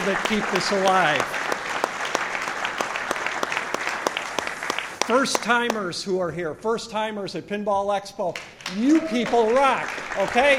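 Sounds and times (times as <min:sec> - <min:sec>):
audience applause: 0:00.0 - 0:05.8, 0:08.6 - 0:10.5
speech: 0:00.1 - 0:01.4, 0:05.1 - 0:10.5.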